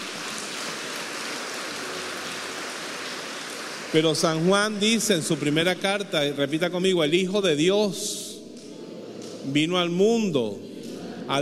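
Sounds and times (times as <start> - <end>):
audience applause: 0.0 - 6.0
speech: 3.9 - 8.3, 9.5 - 10.7, 11.3 - 11.4.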